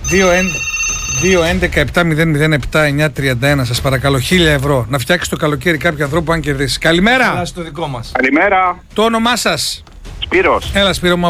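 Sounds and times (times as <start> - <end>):
telephone ringing with warbling electronic rings: 0.0 - 1.8, 8.2 - 8.8
speech: 0.1 - 11.2.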